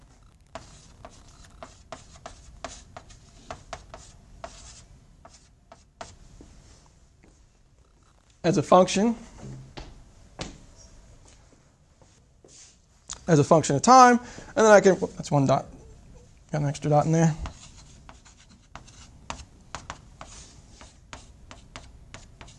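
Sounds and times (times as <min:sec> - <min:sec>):
chalk or marker writing an equation on a board: 0:00.6 - 0:06.2, 0:17.4 - 0:22.5
speech: 0:08.4 - 0:09.3, 0:13.3 - 0:15.8, 0:16.5 - 0:17.5.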